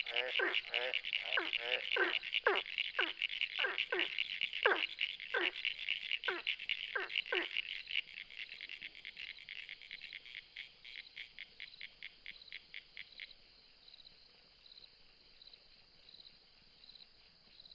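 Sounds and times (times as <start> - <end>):
ornate burrowing frog calls: 0.0 - 13.5.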